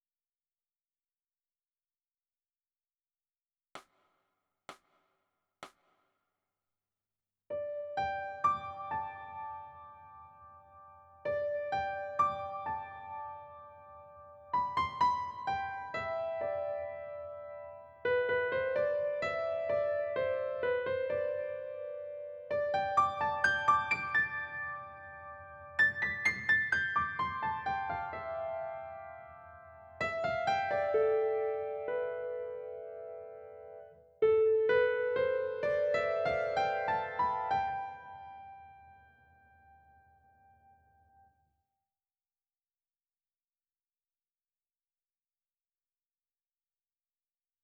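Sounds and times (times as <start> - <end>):
piano: 7.5 - 41.5.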